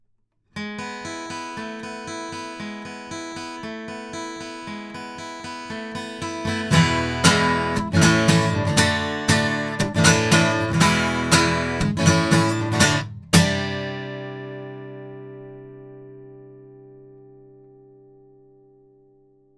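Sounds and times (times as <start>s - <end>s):
guitar: 0.5s - 19.5s.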